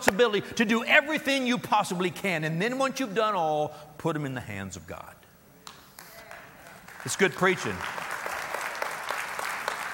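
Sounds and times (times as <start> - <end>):
speech: 0.1 - 5.2, 7.0 - 8.1
audience applause: 6.3 - 9.9.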